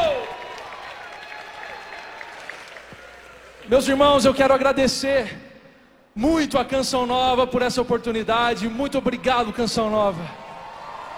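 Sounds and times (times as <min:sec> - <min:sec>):
applause: 0:00.0 - 0:03.7
speech: 0:03.7 - 0:05.5, 0:06.2 - 0:10.4.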